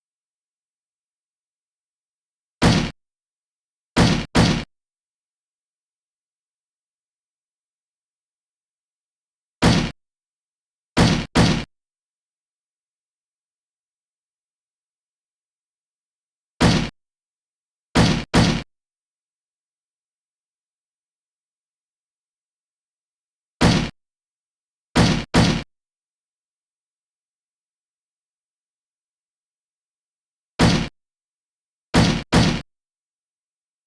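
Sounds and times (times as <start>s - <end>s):
slam: 2.6s - 3.0s, 4.0s - 4.7s, 9.6s - 10.0s, 11.0s - 11.7s, 16.6s - 16.9s, 18.0s - 18.7s, 23.6s - 24.0s, 25.0s - 25.6s, 30.6s - 30.9s, 32.0s - 32.6s.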